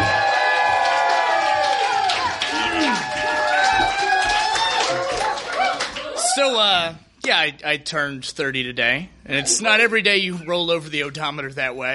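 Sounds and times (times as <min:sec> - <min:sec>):
audience applause and cheering: 0:00.0 - 0:06.6
speech: 0:06.4 - 0:11.9.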